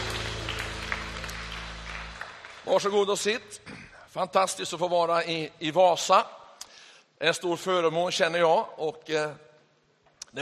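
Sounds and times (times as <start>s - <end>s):
church congregation in Vasa clapping during a service: 0.0s - 3.5s
speech: 2.6s - 6.4s, 7.2s - 9.4s.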